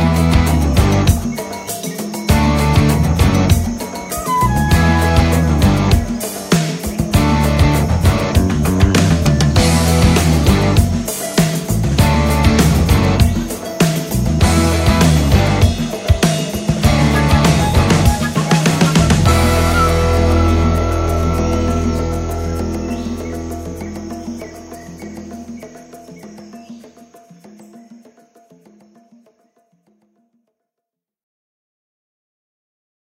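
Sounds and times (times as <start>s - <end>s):
rainforest instrumental music: 0.0s - 30.4s.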